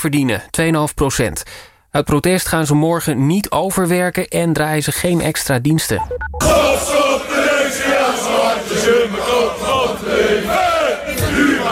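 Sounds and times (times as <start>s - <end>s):
speech: 0.0s - 10.6s
angry Feyenoord football supporters demonstrating on the Stadhuisplein in Rotterdam: 6.4s - 11.6s.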